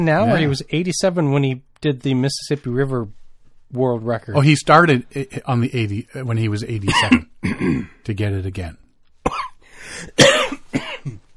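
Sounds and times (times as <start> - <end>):
speech: 0.0 - 9.4, 10.0 - 11.2
coughing after inhaling liquid: 6.8 - 8.0, 9.2 - 9.6, 10.2 - 11.3.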